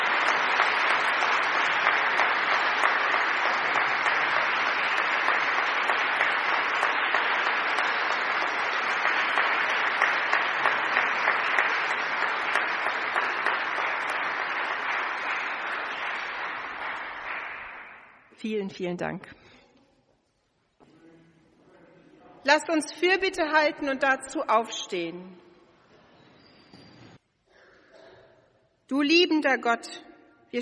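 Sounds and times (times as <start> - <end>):
audience applause: 0.0 - 18.2
speech: 18.4 - 19.4, 22.5 - 25.4, 28.9 - 30.6.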